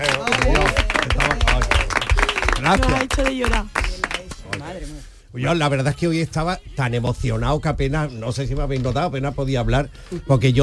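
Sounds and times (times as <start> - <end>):
audience applause: 0.0 - 4.7
speech: 2.7 - 3.8, 5.3 - 10.6.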